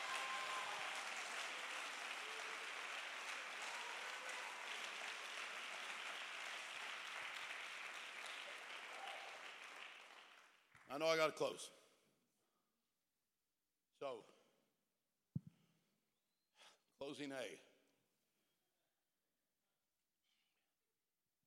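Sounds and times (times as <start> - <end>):
audience clapping: 0.0 - 11.3
speech: 10.9 - 11.8, 14.0 - 14.4, 17.1 - 17.7.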